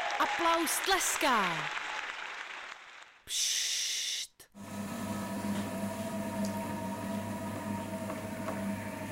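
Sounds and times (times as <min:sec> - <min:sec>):
speech: 0:00.2 - 0:01.8, 0:03.3 - 0:03.6
potter's wheel spinning: 0:04.6 - 0:09.0.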